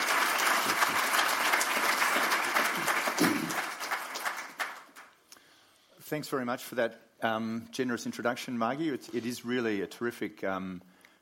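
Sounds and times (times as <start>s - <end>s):
audience applause welcoming two speakers on stage at an evening writers' event: 0.0s - 5.1s
speech: 6.1s - 10.9s.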